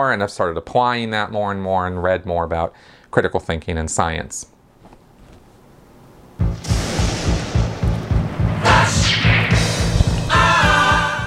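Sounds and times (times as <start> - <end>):
speech: 0.0 - 4.5
lightning and thunder sound effect: 6.5 - 10.6.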